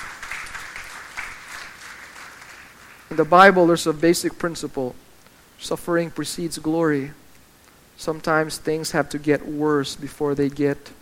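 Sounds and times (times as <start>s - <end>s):
church congregation clapping in praise: 0.0s - 3.2s
speech: 3.1s - 7.2s, 8.0s - 10.9s.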